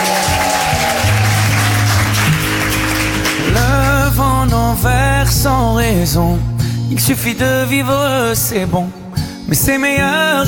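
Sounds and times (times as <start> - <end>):
audience applause: 0.0 - 4.0
speech: 5.3 - 10.4.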